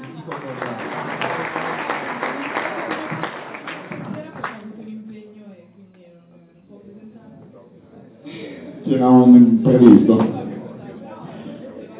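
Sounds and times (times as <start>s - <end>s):
audience applause: 0.0s - 4.6s
speech: 9.0s - 10.4s.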